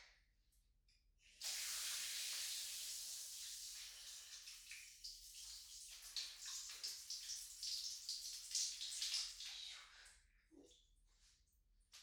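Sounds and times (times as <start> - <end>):
shower water spraying: 1.4 - 9.6.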